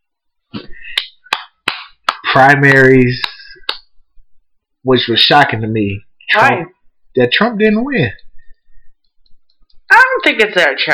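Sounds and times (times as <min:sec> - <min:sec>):
applause: 0:01.0 - 0:02.3
speech: 0:02.3 - 0:03.3, 0:04.8 - 0:08.2, 0:10.2 - 0:10.9.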